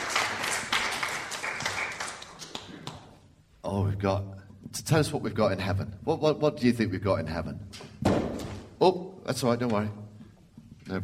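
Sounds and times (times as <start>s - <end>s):
round of applause: 0.0s - 3.2s
speech: 3.7s - 8.2s, 8.8s - 10.0s, 10.9s - 11.0s.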